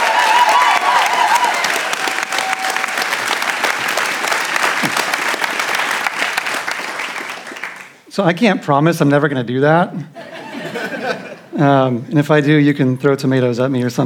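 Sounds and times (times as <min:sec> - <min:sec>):
church congregation clapping to welcome a speaker: 0:00.0 - 0:08.0
speech: 0:08.2 - 0:10.2, 0:11.6 - 0:14.0
laughter: 0:10.2 - 0:11.7.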